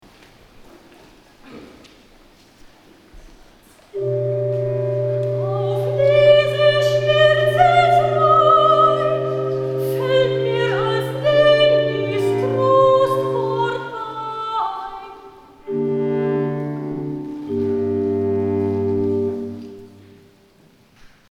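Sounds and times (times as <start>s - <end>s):
recitativo singing: 4.0s - 20.2s.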